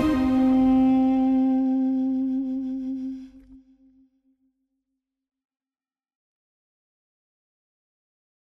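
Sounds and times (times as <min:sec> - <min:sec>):
trailer music: 0:00.0 - 0:03.5
duduk: 0:00.0 - 0:03.8.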